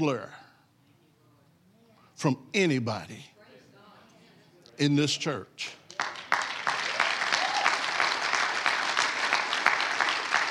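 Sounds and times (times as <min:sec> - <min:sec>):
speech: 0:00.0 - 0:00.4, 0:02.2 - 0:03.3, 0:04.8 - 0:05.8
audience clapping: 0:05.9 - 0:10.5.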